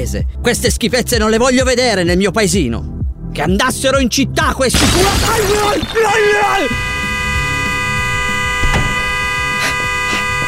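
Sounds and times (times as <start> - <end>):
speech: 0.0 - 6.9
car horn blaring: 4.8 - 10.4.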